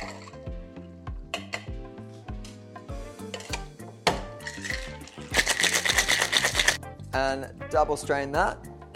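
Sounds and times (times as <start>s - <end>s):
plucky music: 0.0s - 8.9s
cocktail shaker shaken hard with ice: 4.4s - 6.8s
speech: 7.1s - 8.7s.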